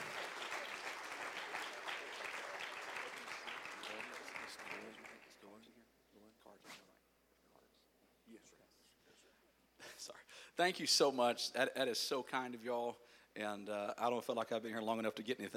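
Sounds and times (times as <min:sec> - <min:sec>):
audience clapping: 0:00.0 - 0:05.6
speech: 0:10.6 - 0:15.5.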